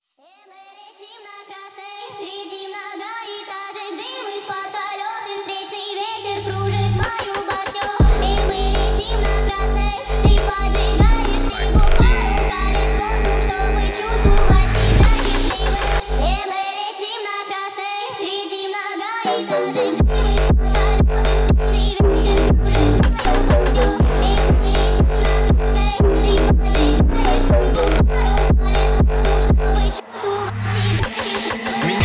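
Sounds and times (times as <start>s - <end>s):
phonk music: 6.5s - 16.5s, 19.2s - 32.0s.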